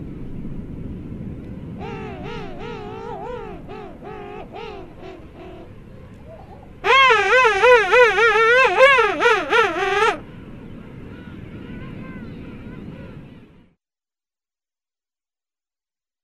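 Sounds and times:
king penguin trumpeting call: 1.8 - 5.7, 6.3 - 10.2.

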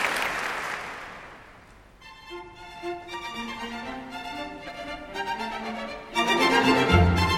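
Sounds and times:
two violins, viola, bass and two horns ensemble: 1.9 - 7.3.

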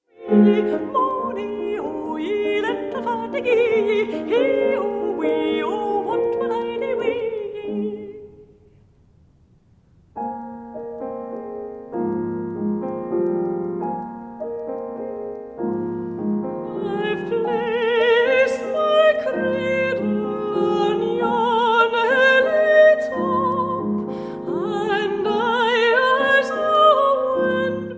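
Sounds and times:
British Isles folk song arrangement for voice and piano: 0.0 - 8.8, 10.2 - 27.9.

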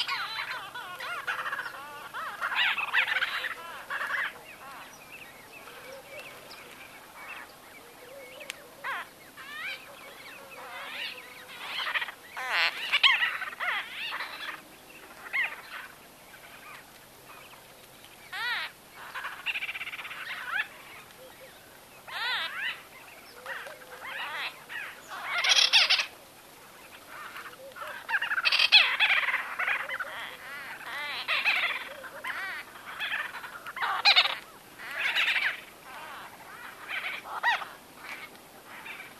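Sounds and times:
White-fronted bee-eaters calling: 0.0 - 17.6, 18.3 - 39.1.

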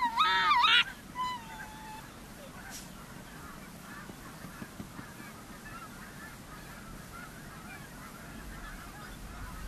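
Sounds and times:
Arctic fox giving harsh harmonic yelps: 0.0 - 2.8.

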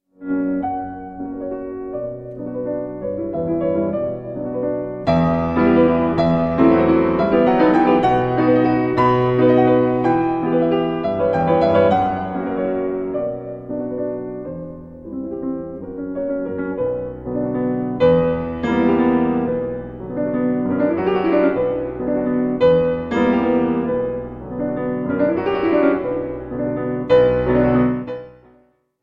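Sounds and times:
piano impromptu in E flat major: 0.0 - 29.0.

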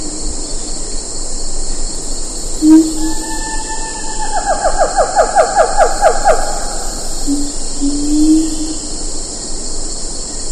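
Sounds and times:
siamang calling: 2.6 - 8.8.

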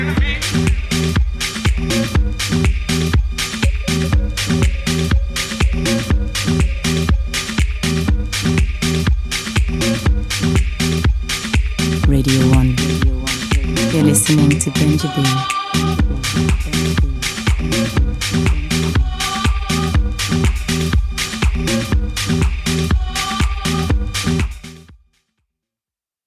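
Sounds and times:
drum ensemble: 0.2 - 24.7.

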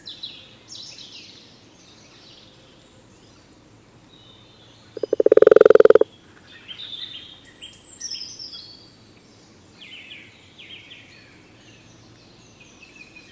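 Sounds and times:
common toad giving a rattling trill: 5.0 - 6.1.

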